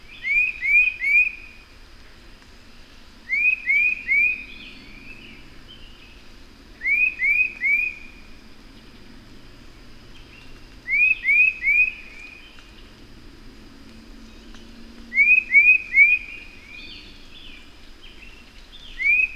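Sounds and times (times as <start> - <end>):
bird singing short rising whistled notes: 0.2 - 1.5, 3.3 - 4.7, 6.8 - 8.1, 10.9 - 12.3, 15.1 - 17.0, 19.0 - 19.3.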